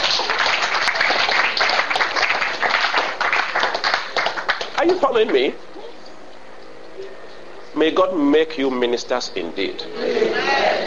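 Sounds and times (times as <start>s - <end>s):
audience clapping: 0.0s - 5.6s
speech: 4.8s - 5.7s, 7.8s - 10.8s.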